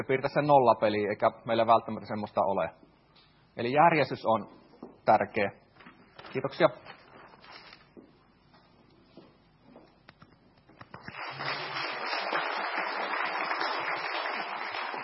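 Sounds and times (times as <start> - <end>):
speech: 0.0 - 2.9, 3.6 - 5.6, 6.3 - 6.9
audience applause: 11.0 - 15.0.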